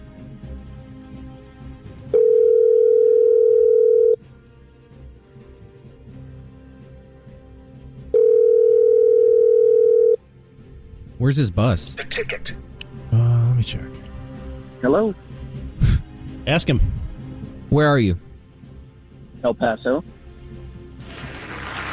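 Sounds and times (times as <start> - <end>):
telephone ring tones calling ticket hotline: 2.2 - 4.2, 8.2 - 10.2
speech: 11.3 - 14.1, 14.8 - 15.4, 16.5 - 17.0, 17.7 - 18.2, 19.4 - 20.2.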